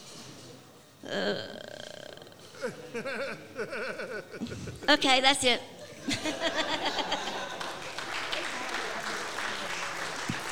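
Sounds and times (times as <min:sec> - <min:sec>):
speech: 0:01.1 - 0:01.6, 0:02.7 - 0:07.1
loud buzzy fart: 0:01.1 - 0:02.4
laughter: 0:02.6 - 0:05.0, 0:05.8 - 0:10.5.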